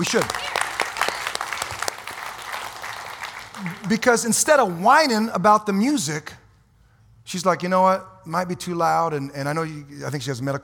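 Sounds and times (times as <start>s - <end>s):
speech: 0.0s - 0.5s, 3.8s - 6.4s, 7.3s - 10.6s
audience clapping: 0.0s - 4.6s.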